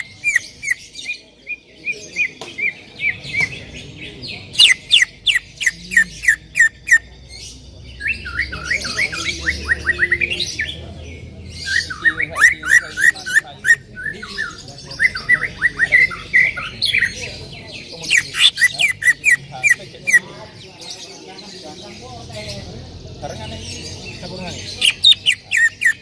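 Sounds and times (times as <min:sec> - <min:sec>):
bird chirping: 0:00.0 - 0:26.0.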